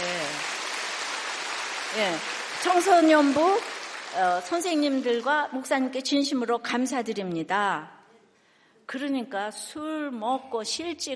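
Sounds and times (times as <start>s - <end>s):
audience applauding: 0.0s - 5.1s
speech: 1.9s - 8.0s, 8.9s - 11.1s.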